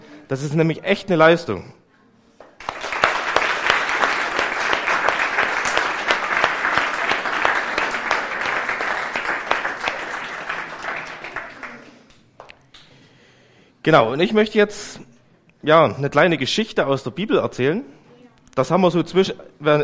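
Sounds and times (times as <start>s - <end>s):
speech: 0.3s - 1.8s, 13.8s - 18.0s, 18.6s - 19.8s
crowd clapping: 2.6s - 12.9s.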